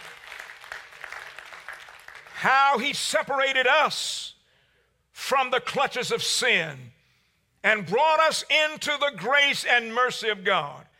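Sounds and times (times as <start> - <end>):
faint hand-clapping from a church congregation: 0.0 - 2.4
speech: 2.4 - 4.3, 5.2 - 7.0, 7.6 - 10.9.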